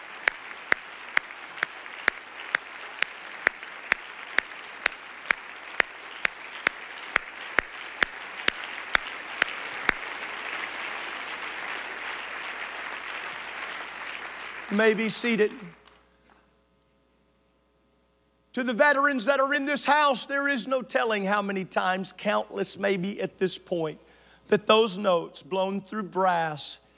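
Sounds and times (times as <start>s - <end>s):
crowd noise: 0.0s - 10.7s
audience clapping in steady unison: 0.0s - 15.8s
speech: 14.7s - 15.8s, 18.6s - 26.8s.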